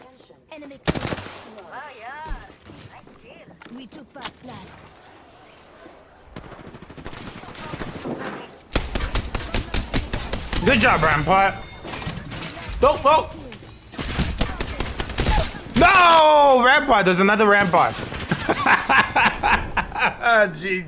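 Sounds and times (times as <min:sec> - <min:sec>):
speech: 0:00.5 - 0:05.1, 0:10.6 - 0:11.7, 0:12.8 - 0:13.4, 0:15.8 - 0:18.1, 0:20.2 - 0:20.8
video game gunfire: 0:00.8 - 0:01.8, 0:06.3 - 0:13.0, 0:13.9 - 0:16.4
player talking: 0:10.6 - 0:11.6, 0:15.8 - 0:18.0, 0:19.9 - 0:20.8
laughter: 0:18.2 - 0:20.6.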